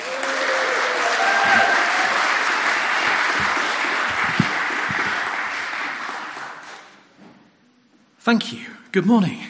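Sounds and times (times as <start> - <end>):
room full of people clapping for a guest preacher: 0.0 - 7.2
speech: 8.3 - 9.4.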